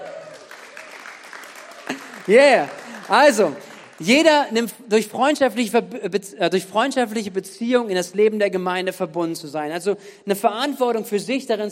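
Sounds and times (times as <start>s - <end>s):
audience applause: 0.0s - 4.3s
speech: 1.9s - 11.7s.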